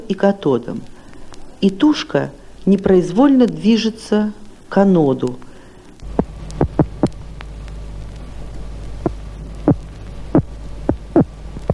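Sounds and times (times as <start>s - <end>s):
speech: 0.1s - 1.0s, 1.6s - 5.5s
electric catfish defensive pulse beats: 6.0s - 11.7s.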